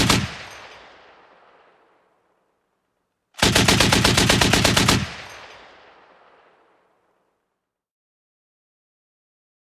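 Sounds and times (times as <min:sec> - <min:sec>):
50 caliber machine gun shot outdoors: 0:00.0 - 0:01.2, 0:03.4 - 0:06.6.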